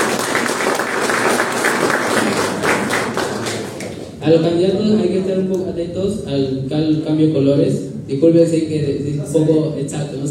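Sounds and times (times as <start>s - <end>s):
audience applause: 0.0s - 4.1s
speech: 4.2s - 10.2s.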